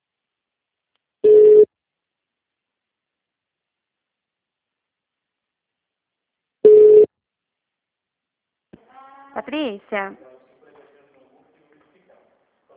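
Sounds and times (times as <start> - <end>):
telephone busy signal beeps after a dropped call: 1.3 - 1.7, 6.7 - 7.1
speech: 9.4 - 10.3.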